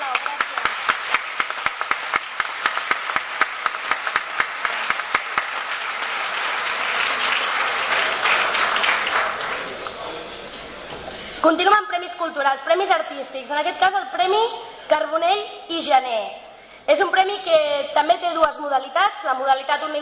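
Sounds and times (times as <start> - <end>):
audience applause: 0.0 - 10.8
speech: 11.4 - 19.9.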